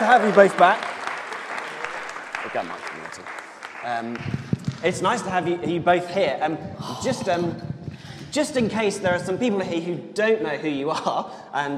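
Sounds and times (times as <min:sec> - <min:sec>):
speech: 0:00.0 - 0:00.9, 0:02.5 - 0:07.7, 0:08.3 - 0:11.7
audience applause: 0:00.0 - 0:05.3.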